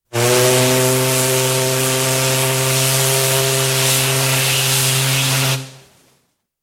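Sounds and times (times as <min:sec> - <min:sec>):
paddle steamer hooter sounded: 0:00.0 - 0:05.9
ship sirens: 0:00.1 - 0:05.4.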